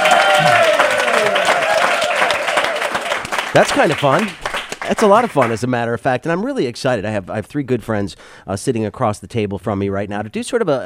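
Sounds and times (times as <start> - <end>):
live studio audience applause: 0.0 - 5.7
speech: 3.6 - 10.8.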